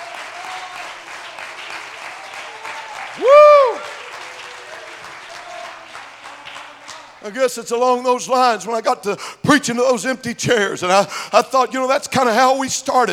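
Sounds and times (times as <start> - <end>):
audience clapping hands: 0.0 - 7.3
speech: 3.2 - 3.4, 7.2 - 13.1.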